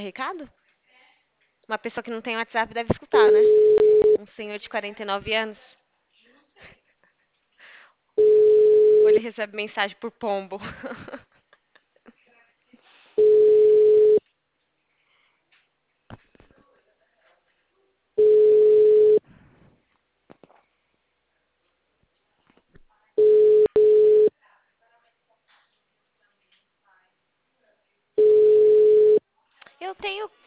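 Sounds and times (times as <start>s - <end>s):
speech: 0.0s - 0.6s, 1.7s - 5.8s, 9.0s - 11.2s, 29.8s - 30.4s
telephone call ringing unanswered: 3.2s - 4.2s, 8.2s - 9.2s, 13.2s - 14.2s, 18.2s - 19.2s, 23.2s - 24.3s, 28.2s - 29.2s.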